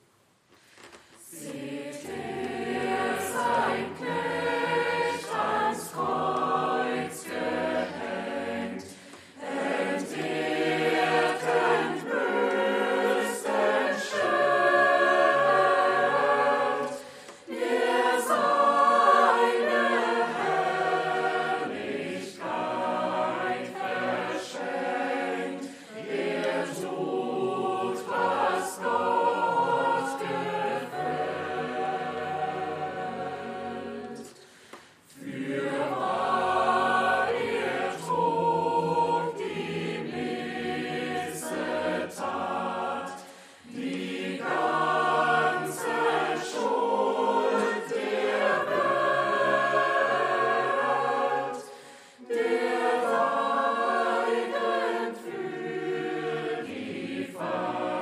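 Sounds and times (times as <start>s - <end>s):
choir singing: 1.2s - 58.0s.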